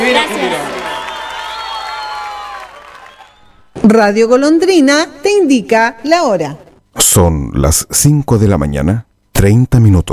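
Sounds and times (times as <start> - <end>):
audience applause: 0.0 - 3.5
speech: 3.8 - 10.1.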